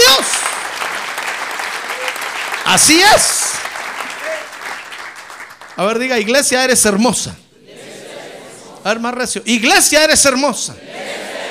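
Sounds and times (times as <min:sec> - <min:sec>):
audience applauding: 0:00.0 - 0:06.5
speech: 0:02.7 - 0:03.4, 0:05.8 - 0:07.4, 0:08.8 - 0:11.1.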